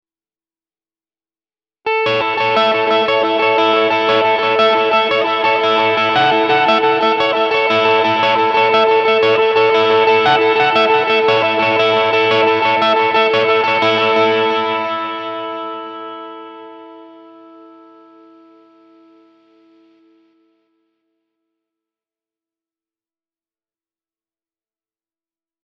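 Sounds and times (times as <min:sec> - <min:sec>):
arpeggio: 0:01.9 - 0:18.3.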